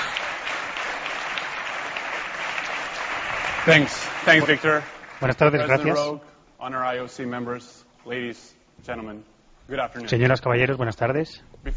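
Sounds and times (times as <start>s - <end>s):
audience applause: 0.0s - 5.8s
speech: 3.6s - 11.7s.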